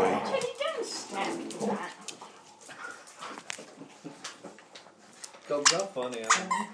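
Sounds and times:
dogs playing with scuffling: 0.0 - 6.7
speech: 5.5 - 6.7
dog yips: 6.3 - 6.7.

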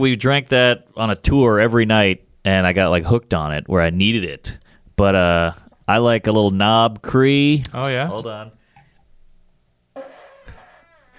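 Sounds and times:
speech: 0.0 - 8.6
fart imitated with the mouth: 10.0 - 11.1.

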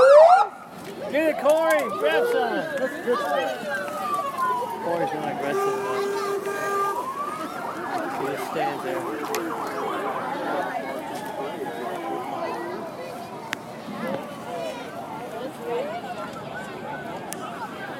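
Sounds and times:
EMT truck siren passing: 0.0 - 0.7, 1.6 - 13.2
busy crowd of overlapping voices, shouts and chatter: 0.0 - 17.9
speech: 1.1 - 4.2, 4.8 - 6.3, 8.2 - 10.8.

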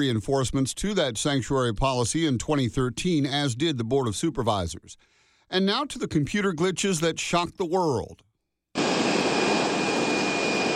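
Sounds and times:
speech: 0.0 - 8.3
United Airlines passenger jets idling on runways: 8.8 - 10.7.

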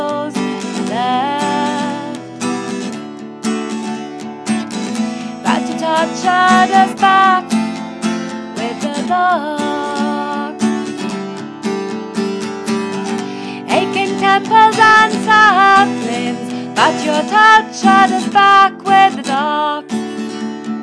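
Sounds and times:
person singing an old song in a bedroom: 0.0 - 2.4, 5.2 - 7.7, 8.4 - 11.2, 13.3 - 20.2.

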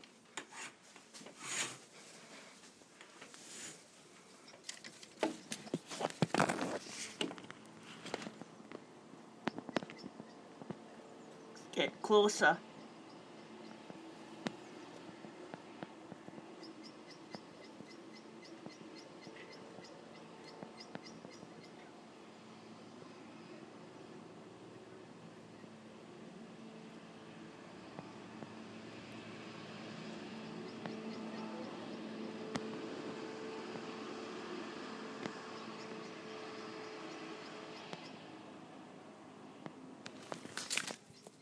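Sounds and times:
birds: 4.2 - 11.7, 12.6 - 24.4, 29.9 - 38.4, 40.1 - 41.4
car passing: 6.9 - 41.4
speech: 12.1 - 12.7.

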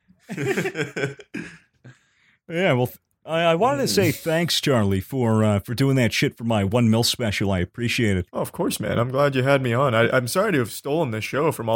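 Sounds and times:
laughter: 0.2 - 1.7
speech: 0.3 - 1.4, 2.5 - 11.7
man fake sneezing and coughing: 1.2 - 1.8.

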